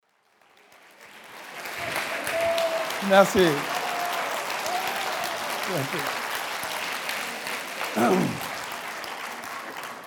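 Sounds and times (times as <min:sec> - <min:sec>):
lecture audience ovation applause: 0:00.1 - 0:10.0
speech: 0:03.0 - 0:03.7, 0:05.7 - 0:06.2, 0:08.0 - 0:08.5.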